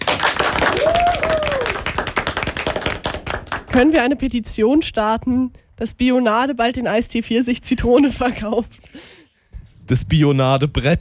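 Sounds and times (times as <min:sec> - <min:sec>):
applause: 0:00.0 - 0:04.0
speech: 0:03.8 - 0:09.2, 0:09.9 - 0:10.9.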